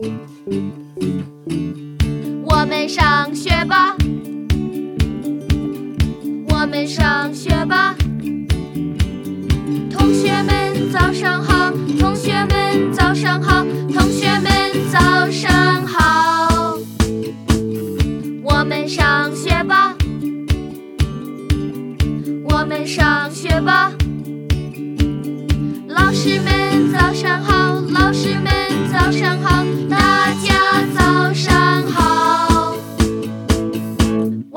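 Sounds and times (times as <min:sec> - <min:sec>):
Chinese song: 0:00.0 - 0:24.3, 0:25.6 - 0:34.4.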